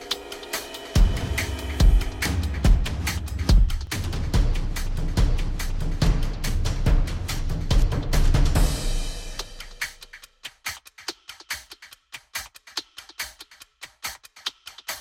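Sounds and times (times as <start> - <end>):
music: 0.0 - 14.9.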